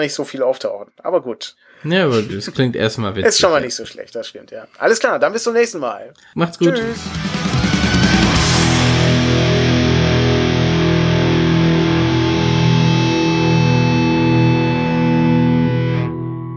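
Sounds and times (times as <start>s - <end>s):
speech: 0.0s - 7.6s
rock song played as episode outro: 6.6s - 16.5s.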